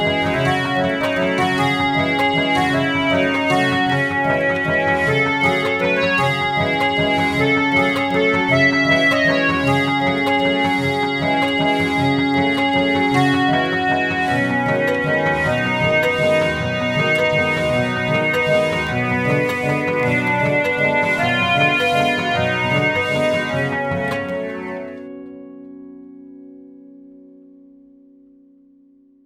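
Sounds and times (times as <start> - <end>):
harmonium waltz: 0.0 - 25.4.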